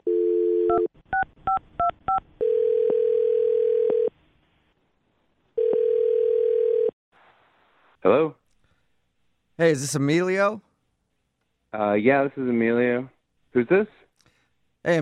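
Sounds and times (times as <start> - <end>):
outgoing phone call ringing tone: 0.0 - 0.9, 2.4 - 4.1, 5.6 - 6.9
speech: 8.0 - 8.4, 9.6 - 10.7, 11.8 - 14.0, 14.8 - 15.0.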